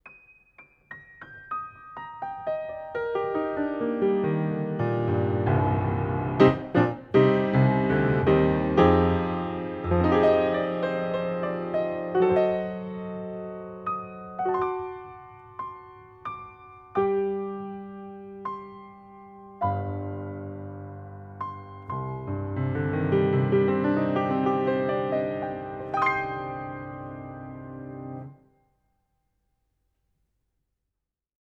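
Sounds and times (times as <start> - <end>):
piano recorded with a 30cm cardioid microphone pair: 0.0 - 28.9.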